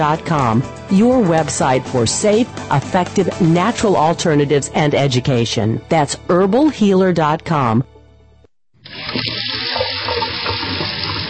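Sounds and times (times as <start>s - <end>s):
speech: 0.0s - 7.9s
water running from a faucet: 8.8s - 11.2s.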